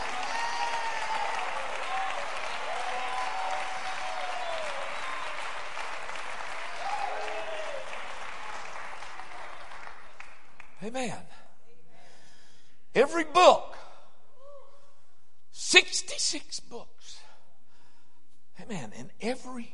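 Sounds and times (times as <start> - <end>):
audience shouting: 0.0 - 5.5, 6.6 - 8.0
audience clapping hands: 0.0 - 10.8
speech: 10.9 - 11.5, 13.0 - 13.7, 15.7 - 17.2, 18.7 - 19.7.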